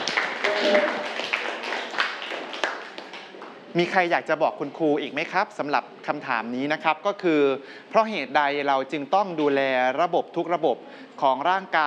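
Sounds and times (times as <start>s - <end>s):
students clapping for classmate: 0.0s - 3.6s
speech: 3.8s - 11.8s.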